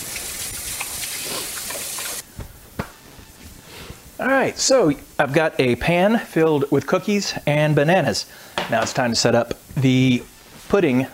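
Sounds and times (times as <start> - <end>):
hands being washed under running tap water: 0.0 - 2.2
speech: 4.2 - 11.1.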